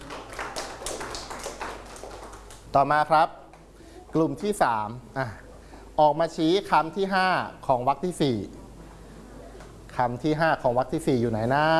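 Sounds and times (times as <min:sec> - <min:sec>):
children clapping for a classmate: 0:00.0 - 0:02.8
speech: 0:02.8 - 0:03.4, 0:04.1 - 0:05.4, 0:06.0 - 0:08.6, 0:10.0 - 0:11.7.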